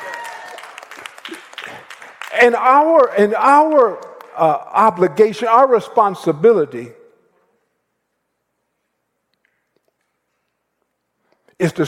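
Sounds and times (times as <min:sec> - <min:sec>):
few people clapping: 0:00.0 - 0:04.6
speech: 0:01.3 - 0:07.0, 0:11.6 - 0:11.8.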